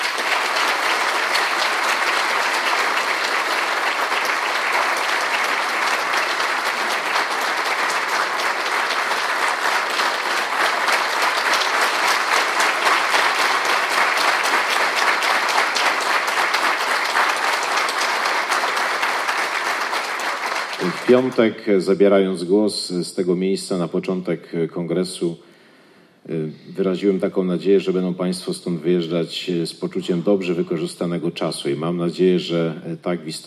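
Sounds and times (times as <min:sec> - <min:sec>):
applause from a large audience: 0:00.0 - 0:21.6
speech: 0:21.1 - 0:25.5, 0:26.8 - 0:33.4.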